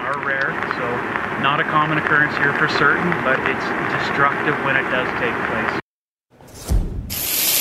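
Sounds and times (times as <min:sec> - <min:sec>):
speech: 0:00.2 - 0:05.8
thunder in a Maple Ridge neighborhood: 0:06.4 - 0:07.5.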